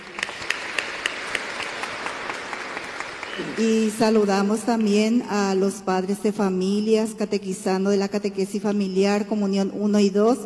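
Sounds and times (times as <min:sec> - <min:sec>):
applause: 0:00.0 - 0:05.2
speech: 0:03.4 - 0:10.4.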